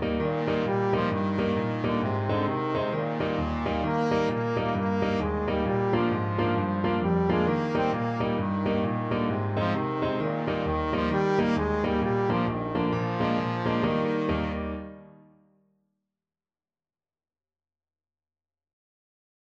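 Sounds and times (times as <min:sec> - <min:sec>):
trombone playing a folk song: 0:00.0 - 0:15.0.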